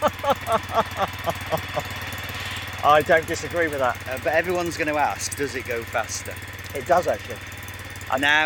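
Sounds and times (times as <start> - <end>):
laughter: 0.0 - 2.6
car engine with loud aftermarket exhaust idling: 0.0 - 8.4
speech: 2.8 - 7.5, 8.1 - 8.4.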